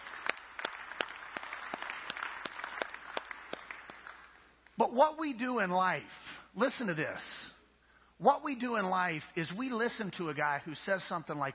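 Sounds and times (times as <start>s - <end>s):
audience clapping hands: 0.0s - 4.8s
speech: 4.8s - 7.5s, 8.2s - 11.5s.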